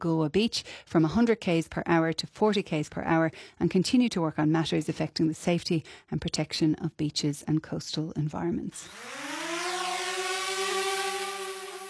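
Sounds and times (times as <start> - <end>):
speech: 0.0 - 9.5
drone buzzing overhead: 8.8 - 11.8.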